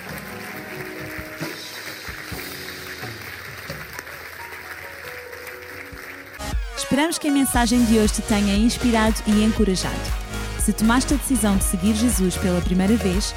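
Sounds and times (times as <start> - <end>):
audience applause: 0.0 - 7.6
speech: 6.9 - 13.3.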